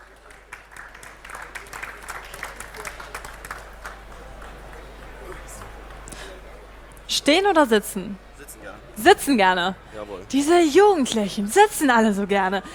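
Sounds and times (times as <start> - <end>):
audience applause: 0.0 - 6.8
speech: 7.2 - 8.3, 9.0 - 12.7.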